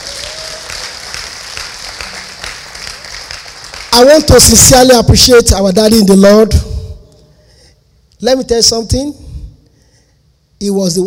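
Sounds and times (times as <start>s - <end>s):
audience clapping: 0.0s - 4.5s
speech: 4.0s - 6.7s, 8.2s - 9.2s, 10.6s - 11.0s.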